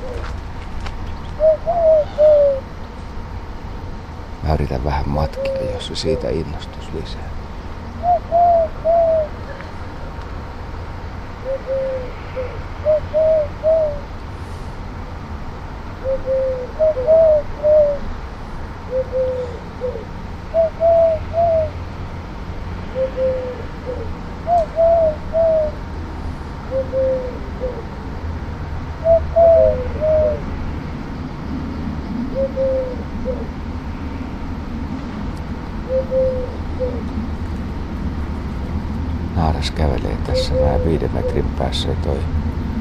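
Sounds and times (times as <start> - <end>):
male dove cooing in treetop: 0.0 - 0.4, 1.1 - 2.8, 4.9 - 6.8, 7.9 - 10.1, 11.4 - 14.1, 16.0 - 18.1, 18.9 - 21.8, 22.9 - 25.9, 26.6 - 28.0, 29.0 - 30.6, 31.6 - 33.6, 35.7 - 37.8, 39.4 - 42.2
faint hum: 0.0 - 42.7
speech: 4.5 - 7.4, 40.9 - 42.6.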